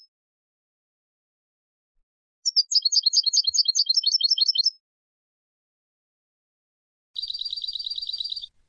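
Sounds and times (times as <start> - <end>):
European goldfinch calling: 2.5 - 4.7, 7.2 - 8.5.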